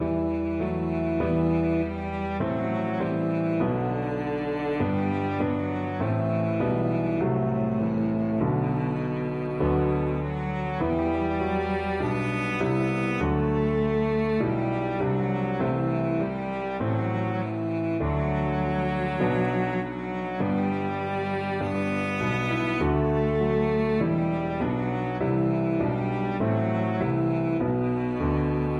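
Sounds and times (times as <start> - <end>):
cello: 0.0 - 28.7.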